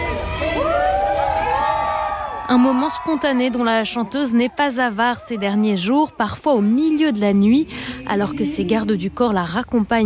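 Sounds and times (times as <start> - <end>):
crowd cheering: 0.0 - 6.4
speech: 2.5 - 10.0.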